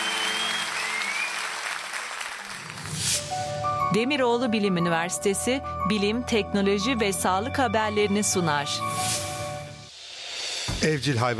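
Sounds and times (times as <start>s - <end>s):
audience applause: 0.0s - 3.0s
speech: 3.9s - 9.1s, 10.8s - 11.3s.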